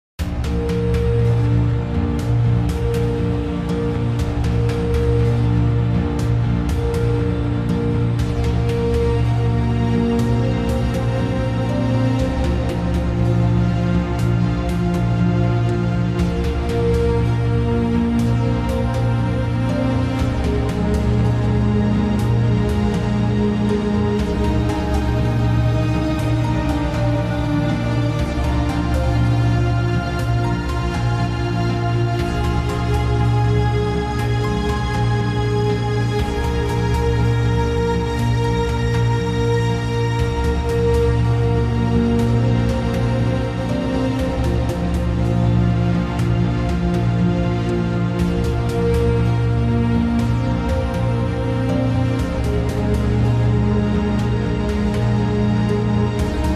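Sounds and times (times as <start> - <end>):
sci-fi theme music: 0.2 - 56.5.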